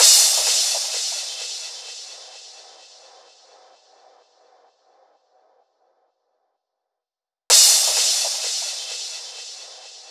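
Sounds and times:
128 BPM drum loop: 0.0 - 4.4, 7.5 - 10.0
crash cymbal: 0.0 - 5.6, 7.5 - 10.0.

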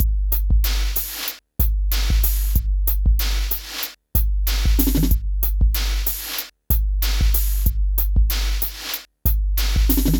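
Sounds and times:
phat beat: 0.0 - 10.1.

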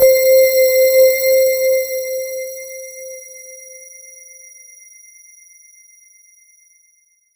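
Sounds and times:
Roland JV 2080 jungle brass synth note C4: 0.0 - 3.4.

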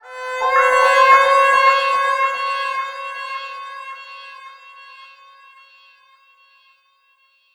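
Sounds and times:
violin effects: 0.0 - 5.9.

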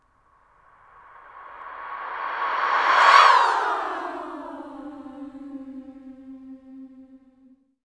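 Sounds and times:
reversed female vocal swoop: 1.2 - 7.5.

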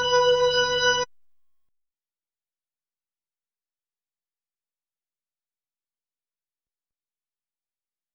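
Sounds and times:
Hammond B3 organ: 0.0 - 1.1.

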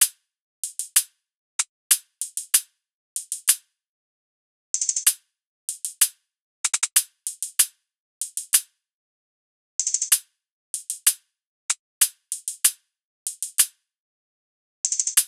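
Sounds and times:
hi-hat loop: 0.6 - 1.0, 2.2 - 2.6, 4.8 - 5.1, 5.7 - 7.6, 8.2 - 8.6, 9.8 - 10.2, 10.8 - 11.1, 12.3 - 12.6, 13.3 - 13.6, 14.9 - 15.2.

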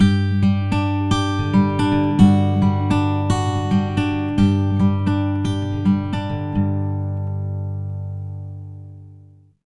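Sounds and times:
acoustic guitar picking loop in G major at 110 BPM: 0.0 - 9.5.

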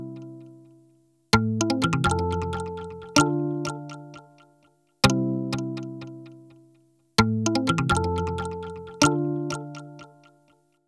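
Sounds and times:
hip-hop and R&B percussion: 1.3 - 4.3, 7.2 - 10.1.

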